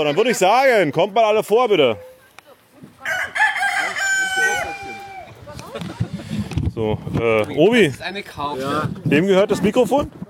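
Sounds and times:
speech: 0.0 - 2.1, 6.8 - 10.2
rooster crowing in a farmyard: 3.0 - 5.4.

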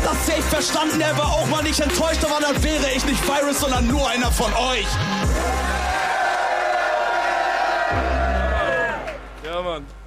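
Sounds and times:
speech: 0.3 - 6.0, 9.6 - 10.0
live audience cheering and whooping: 5.3 - 9.3.

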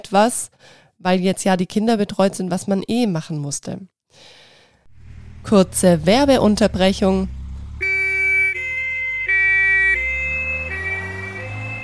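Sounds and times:
speech: 0.1 - 4.4, 5.4 - 7.4
low vehicle rumble: 4.9 - 11.8
ambulance siren: 5.4 - 11.8.

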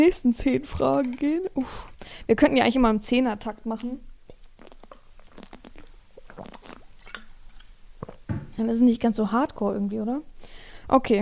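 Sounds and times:
speech: 0.0 - 4.1, 6.4 - 6.6, 8.6 - 11.2
person sipping a drink: 4.3 - 8.4.

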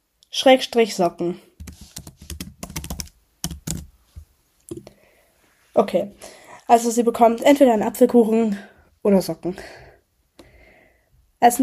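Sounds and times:
speech: 0.4 - 1.5, 5.8 - 9.8, 11.4 - 11.6
typing on a computer keyboard: 1.6 - 3.9.

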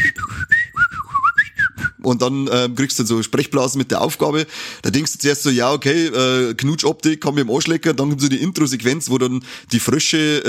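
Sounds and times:
video game dialogue tones played on flutes: 0.0 - 2.0
speech: 2.0 - 10.4.

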